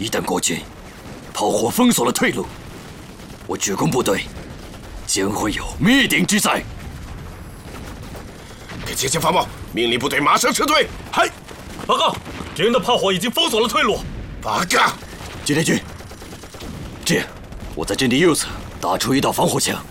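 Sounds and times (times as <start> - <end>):
artillery fire in a war drama battle scene: 0.0 - 19.8
gunfire in a war drama battle scene: 0.0 - 19.8.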